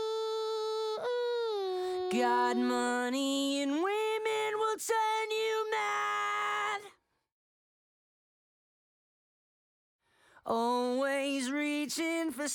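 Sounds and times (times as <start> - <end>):
lead vocals: 0.0 - 6.9, 10.4 - 12.5.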